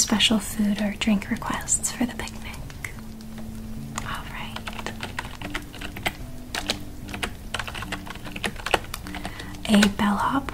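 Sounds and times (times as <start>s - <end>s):
low steady hum: 0.0s - 10.5s
speech: 0.1s - 2.6s, 9.7s - 10.5s
typing on a computer keyboard: 2.5s - 10.1s.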